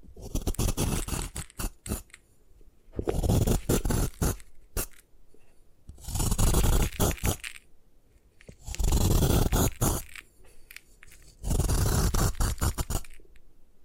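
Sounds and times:
gym chalk crushed and ground: 0.0s - 2.2s, 3.0s - 5.0s, 5.9s - 7.6s, 8.4s - 13.2s.

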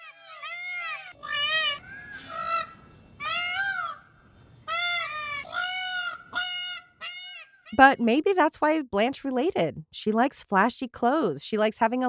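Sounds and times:
peacock calling: 0.0s - 8.1s
speech: 7.8s - 12.0s.

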